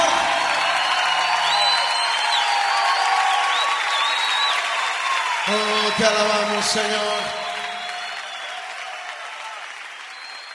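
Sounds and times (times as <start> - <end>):
applause: 0.0 - 10.5
speech: 5.5 - 7.4.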